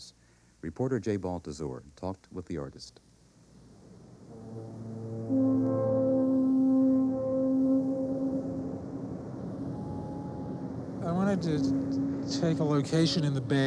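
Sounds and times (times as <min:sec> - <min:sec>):
speech: 0:00.6 - 0:03.1, 0:04.4 - 0:05.9, 0:11.3 - 0:13.6
deep droning foghorn blasts across the bay: 0:03.6 - 0:13.6.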